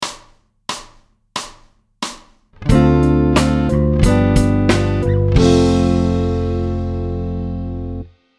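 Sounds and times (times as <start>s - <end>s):
musical chord: 2.6s - 8.1s.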